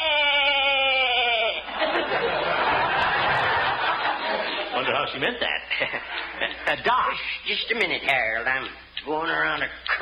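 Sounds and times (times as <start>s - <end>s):
sheep bleating: 0.0s - 1.7s
laughter: 0.7s - 7.2s
speech: 4.8s - 10.0s.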